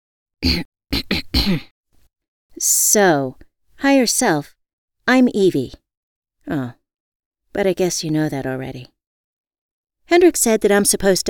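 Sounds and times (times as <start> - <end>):
performed throat clearing by someone at a kitchen table: 0.4 - 1.7
speech: 0.4 - 1.7, 2.6 - 5.8, 6.5 - 6.8, 7.6 - 8.9, 10.1 - 11.2.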